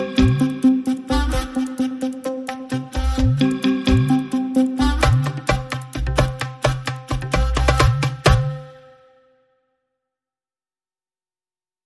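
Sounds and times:
percussion and pulses: 0.0 - 9.1.

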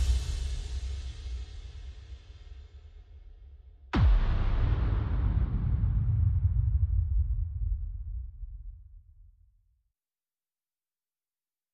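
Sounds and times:
percussion: 0.0 - 9.1.

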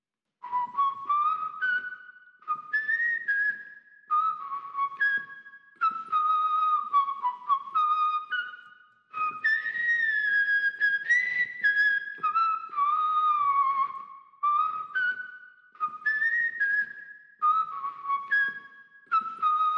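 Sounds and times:
whistle: 0.4 - 19.7.

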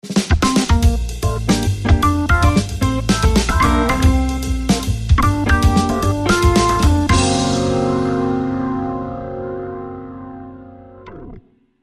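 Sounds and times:
funky organ: 0.4 - 9.0.

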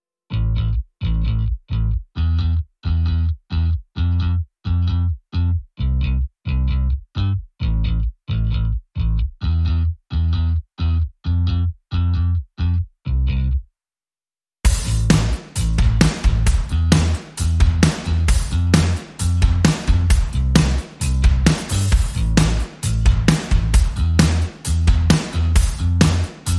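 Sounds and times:
bass: 0.3 - 13.7, 14.7 - 26.5
drums: 14.6 - 26.5.

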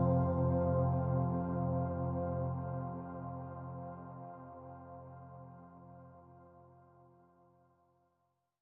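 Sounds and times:
synth pads in F: 0.0 - 6.0.

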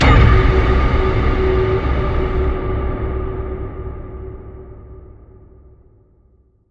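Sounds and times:
big solid rock hit: 0.0 - 4.8.

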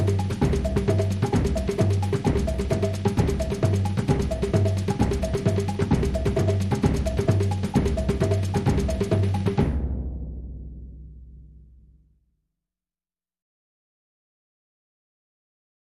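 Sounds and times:
carnival drum kit loop: 0.0 - 9.8.

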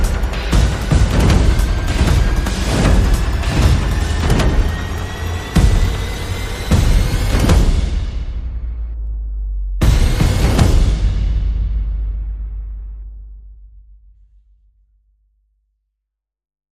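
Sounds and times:
sound effects: 0.0 - 11.4
percussion pulses: 0.0 - 14.2.

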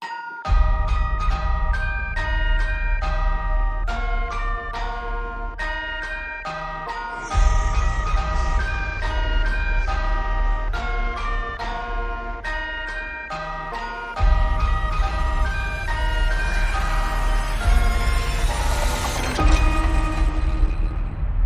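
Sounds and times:
horror version of a nursery rhyme: 0.0 - 21.4.

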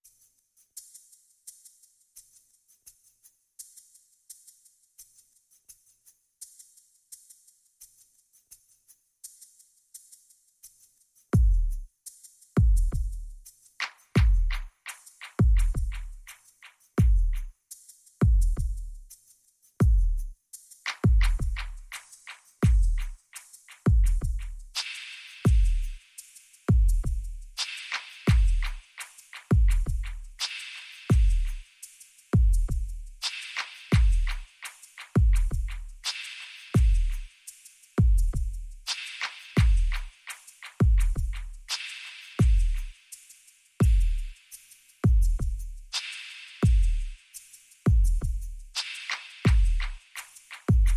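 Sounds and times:
percussion: 0.0 - 50.9.

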